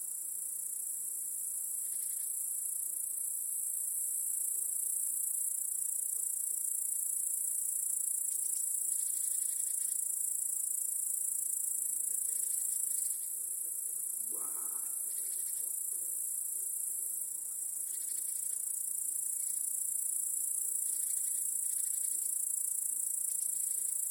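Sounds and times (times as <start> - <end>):
crickets trilling: 0.1 - 24.0.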